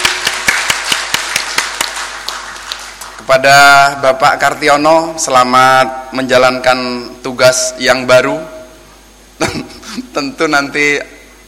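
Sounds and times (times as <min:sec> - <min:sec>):
audience clapping: 0:00.0 - 0:03.3
speech: 0:03.2 - 0:08.5, 0:10.2 - 0:11.1.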